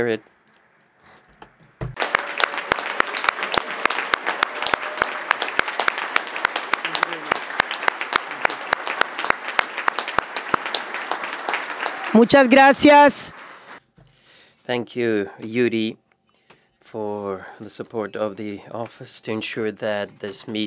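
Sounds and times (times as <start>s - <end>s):
speech: 0.0s - 0.4s, 12.2s - 13.4s, 14.7s - 16.0s, 16.9s - 20.6s
crowd applauding: 1.9s - 13.8s.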